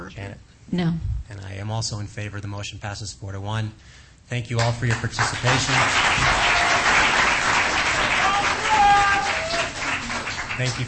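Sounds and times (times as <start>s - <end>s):
speech: 0.1s - 6.6s, 10.6s - 10.8s
audience clapping: 4.5s - 10.8s.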